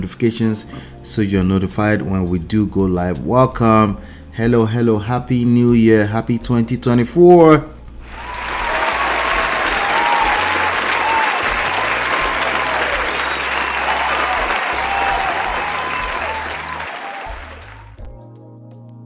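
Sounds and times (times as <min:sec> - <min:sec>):
speech: 0:00.0 - 0:07.8
applause sound effect: 0:08.1 - 0:18.1.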